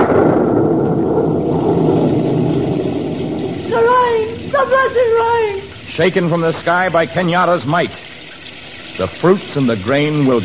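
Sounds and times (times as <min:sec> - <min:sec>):
rumble of thunder: 0:00.0 - 0:06.2
speech: 0:06.0 - 0:08.1, 0:09.0 - 0:10.4.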